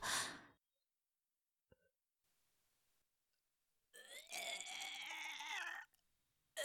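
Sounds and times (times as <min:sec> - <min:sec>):
person vomiting: 0:04.0 - 0:05.9.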